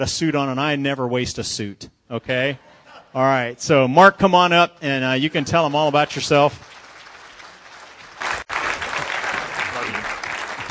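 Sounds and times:
speech: 0.0 - 6.7
audience cheering: 5.2 - 10.6.

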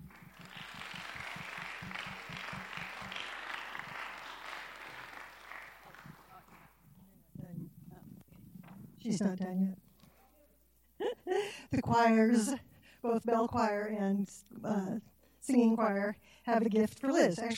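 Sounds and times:
audience applause: 0.0 - 6.8
speech: 9.1 - 9.9, 11.7 - 17.5.

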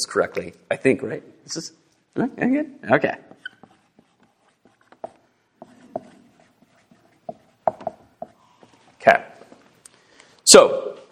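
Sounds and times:
speech: 0.0 - 3.5, 9.0 - 9.3, 10.5 - 11.0
pen scratching as something is written by hand: 3.3 - 8.8.

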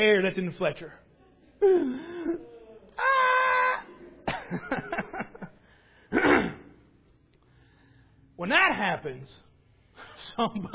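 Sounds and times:
speech: 0.0 - 3.1, 4.5 - 4.9, 8.4 - 9.5, 10.3 - 10.7
child crying and screaming: 3.0 - 3.9
laughter: 3.9 - 5.7.

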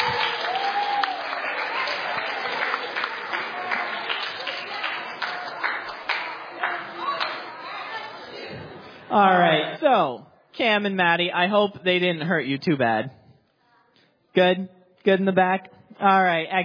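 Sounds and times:
crowd whooping: 0.0 - 5.6
crowd applauding steadily: 0.0 - 8.5
faint chatter: 1.6 - 9.8
speech: 9.1 - 13.2, 14.4 - 16.6.

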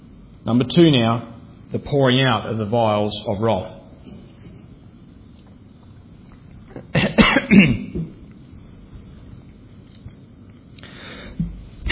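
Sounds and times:
speech: 0.4 - 3.8
harsh sputtering coughs: 6.7 - 8.2
quiet breathing: 10.7 - 11.6.

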